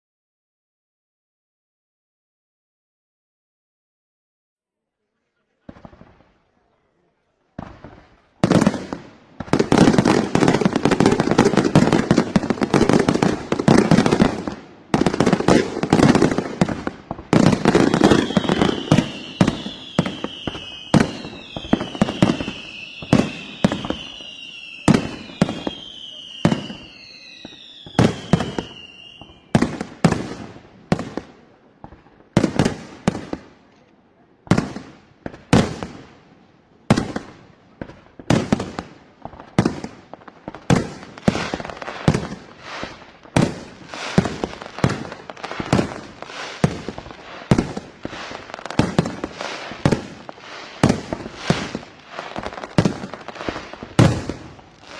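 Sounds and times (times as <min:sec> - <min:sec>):
4th of July fireworks: 0:05.2 - 0:54.9.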